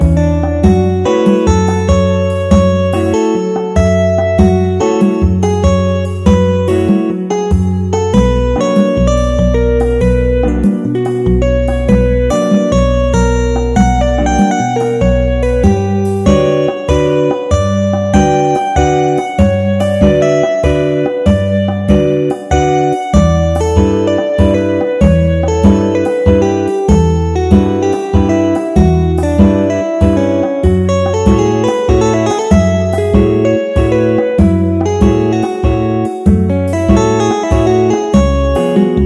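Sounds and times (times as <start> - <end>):
music in mixolydian mode: 0.0 - 39.0.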